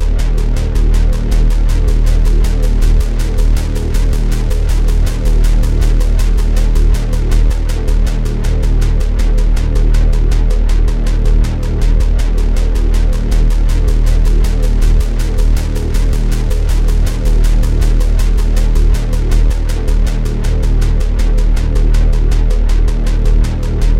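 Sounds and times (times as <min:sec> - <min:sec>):
chase music: 0:00.0 - 0:23.9.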